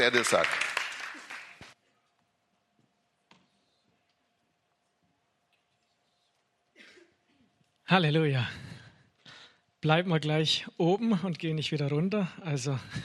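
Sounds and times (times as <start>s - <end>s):
speech: 0.0s - 0.7s, 7.9s - 8.7s, 9.8s - 13.0s
audience applause: 0.0s - 1.7s.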